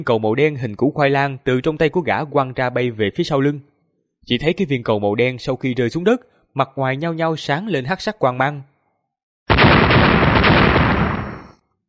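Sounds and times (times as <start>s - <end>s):
speech: 0.0s - 8.7s
loud explosions: 9.5s - 11.6s.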